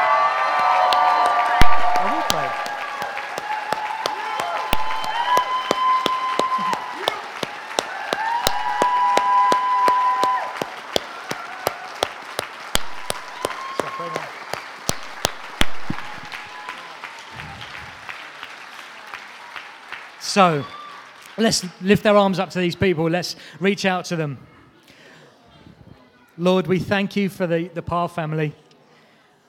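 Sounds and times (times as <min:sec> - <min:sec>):
audience applause and cheering: 0:00.0 - 0:21.9
speech: 0:20.4 - 0:20.8, 0:21.4 - 0:24.5, 0:26.4 - 0:28.6.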